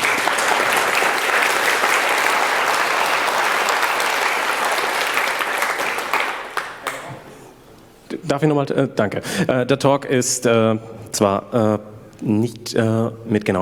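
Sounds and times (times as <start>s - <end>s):
audience applause: 0.0s - 7.3s
speech: 8.3s - 13.6s.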